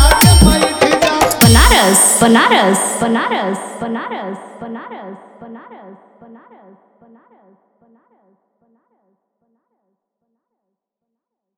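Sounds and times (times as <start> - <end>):
Bhojpuri DJ remix song: 0.0 - 3.4.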